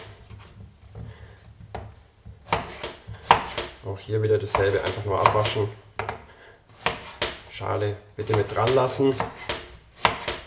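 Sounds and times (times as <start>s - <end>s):
knife chopping zucchini into small cubes: 1.2s - 3.8s, 4.4s - 7.5s, 8.2s - 10.4s
speech: 3.9s - 5.8s, 7.6s - 9.5s.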